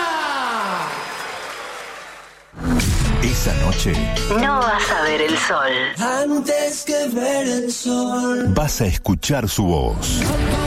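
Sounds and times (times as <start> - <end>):
loud audience applause: 0.0 - 2.6
speech: 3.2 - 10.6.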